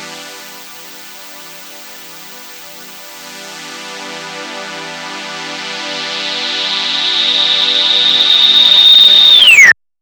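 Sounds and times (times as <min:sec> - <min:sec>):
Waldorf Blofeld synthesizer with band-pass filter: 0:03.3 - 0:09.7.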